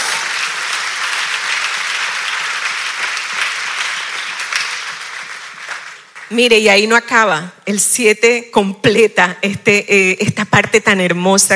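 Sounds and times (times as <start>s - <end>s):
audience applause: 0.0s - 6.3s
speech: 6.3s - 11.5s.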